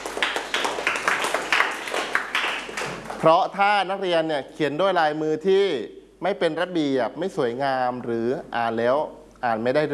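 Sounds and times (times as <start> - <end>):
classroom clapping: 0.0 - 3.4
speech: 3.2 - 9.9.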